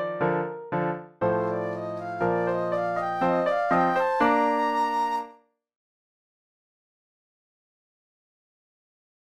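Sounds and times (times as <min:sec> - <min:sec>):
flute: 0:01.2 - 0:05.5.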